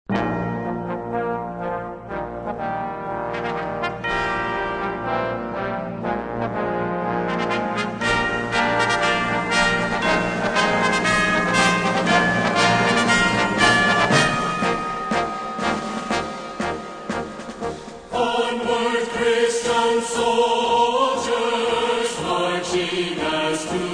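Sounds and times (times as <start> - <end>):
orchestra playing: 0.1 - 18.9
choir singing: 3.6 - 23.9.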